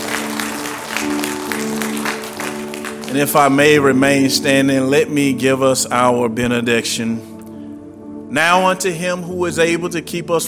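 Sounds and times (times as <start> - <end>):
congregation applauding in praise at a church service: 0.0 - 4.3
speech: 3.1 - 7.3, 8.3 - 10.4.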